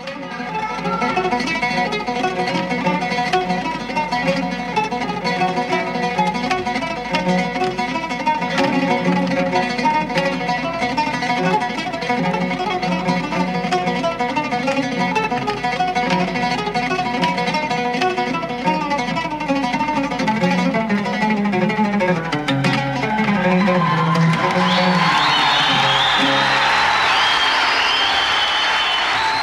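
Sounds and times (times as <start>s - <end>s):
live oud performance with plucked lines and tremolo runs: 0.0s - 27.1s
loud sustained applause from an audience: 22.4s - 29.4s.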